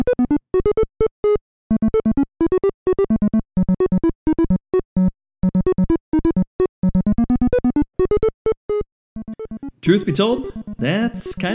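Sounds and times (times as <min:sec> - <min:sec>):
perky NES chiptune music with bright square-wave bleeps: 0:00.0 - 0:11.5
laughter: 0:09.8 - 0:11.5
speech: 0:09.9 - 0:11.5.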